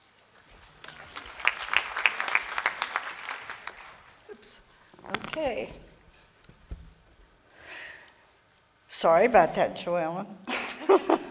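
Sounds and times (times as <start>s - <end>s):
audience applause: 0.5s - 4.3s
speech: 5.4s - 5.8s, 9.0s - 11.2s.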